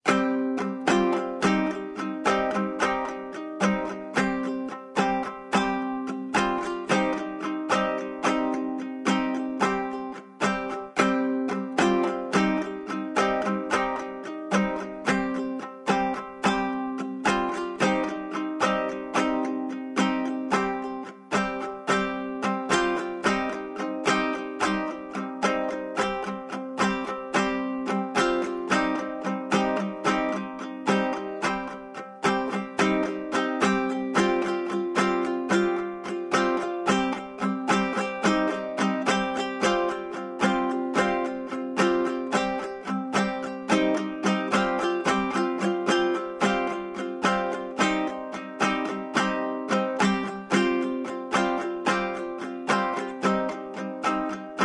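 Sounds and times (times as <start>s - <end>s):
bard kithara playing: 0.0s - 54.6s.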